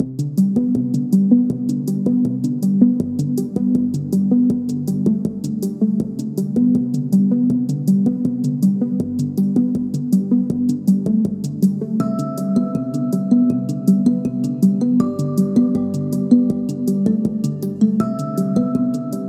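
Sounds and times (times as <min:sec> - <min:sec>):
calm digital music: 0:00.0 - 0:19.2.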